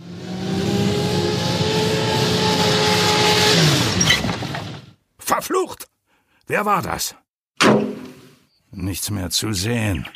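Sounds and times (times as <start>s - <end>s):
sports car engine decelerating: 0.0s - 4.9s
speech: 5.4s - 5.8s, 6.5s - 7.2s, 8.7s - 10.1s.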